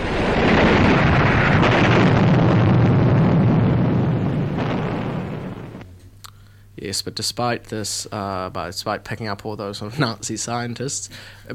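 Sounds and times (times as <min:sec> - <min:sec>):
flying bomb explosion: 0:00.0 - 0:05.9
speech: 0:06.9 - 0:11.5.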